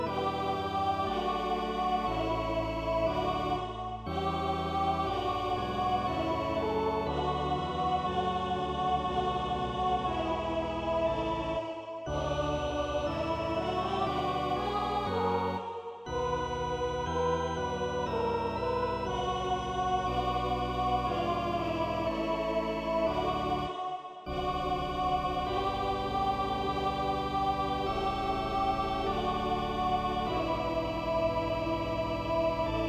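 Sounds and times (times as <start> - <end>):
choir singing a chorale in D major: 0.0 - 32.8
organ accompanying a chorale in D major: 0.0 - 32.8.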